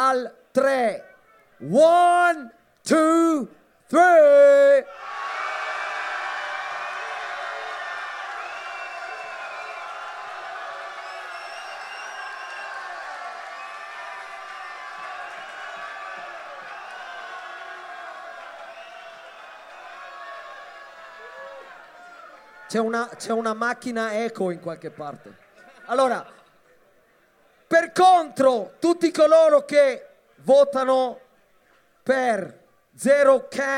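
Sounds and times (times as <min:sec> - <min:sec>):
speech: 0:00.0 - 0:05.0, 0:22.7 - 0:26.4, 0:27.7 - 0:31.2, 0:32.0 - 0:33.7
crowd cheering for a battle contestant: 0:04.8 - 0:26.1
crowd whistles: 0:08.3 - 0:10.1, 0:11.0 - 0:12.8, 0:18.6 - 0:19.3.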